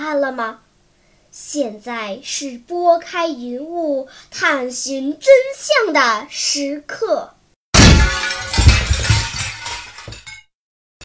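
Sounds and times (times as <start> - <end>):
speech: 0.1 - 0.6, 1.3 - 7.4
pistol used as a hammer striking: 7.8 - 9.8
debris clinking and shattering: 7.8 - 10.5.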